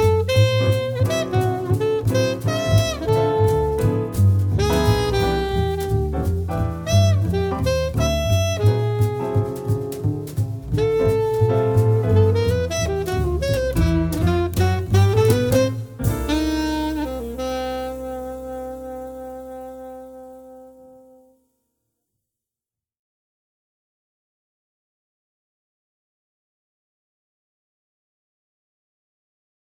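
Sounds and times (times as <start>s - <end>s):
piano quartet playing: 0.0s - 20.8s.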